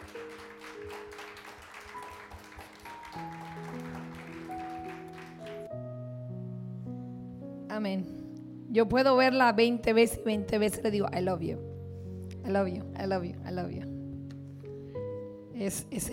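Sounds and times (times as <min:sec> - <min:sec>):
audience applause: 0:00.0 - 0:05.7
speech: 0:07.8 - 0:11.7, 0:12.4 - 0:13.9, 0:15.6 - 0:16.1.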